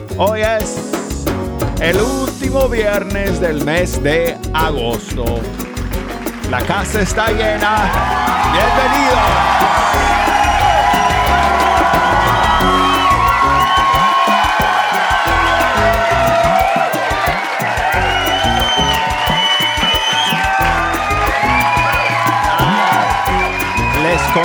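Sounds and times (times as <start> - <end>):
speech: 0.2 - 5.7, 6.5 - 10.4
studio audience applauding and cheering: 5.5 - 24.4.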